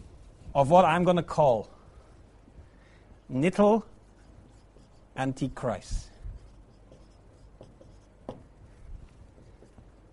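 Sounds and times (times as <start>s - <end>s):
speech: 0.5s - 1.7s, 3.3s - 3.9s, 5.2s - 6.1s
writing on a board: 3.5s - 10.1s.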